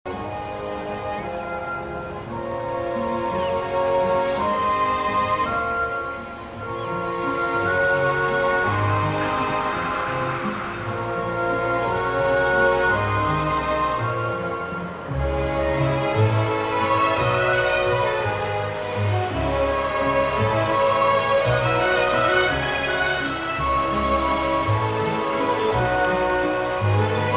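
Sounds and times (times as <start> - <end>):
music: 0.0 - 27.3.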